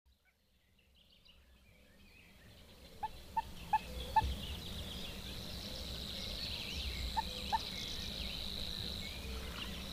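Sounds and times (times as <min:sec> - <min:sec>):
common moorhen calls: 0:02.9 - 0:09.9.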